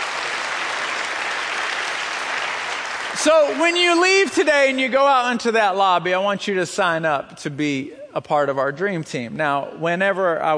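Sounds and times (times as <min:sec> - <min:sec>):
audience applause for church ushers: 0:00.0 - 0:04.8
speech: 0:03.2 - 0:10.5.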